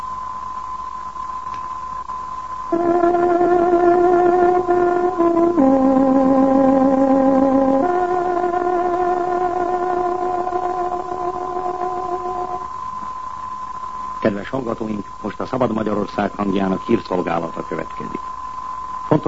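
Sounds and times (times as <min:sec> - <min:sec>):
speech: 0:02.7 - 0:03.4, 0:14.5 - 0:18.3
tárogató playing a time signal tune: 0:02.7 - 0:12.6.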